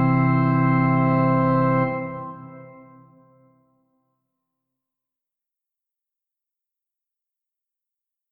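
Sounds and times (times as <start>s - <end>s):
organ: 0.0s - 3.4s.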